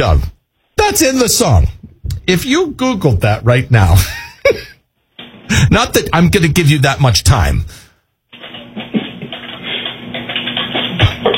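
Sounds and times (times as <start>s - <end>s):
speech: 0.0s - 4.2s, 5.5s - 7.8s
loud typing on a computer keyboard: 8.4s - 11.3s.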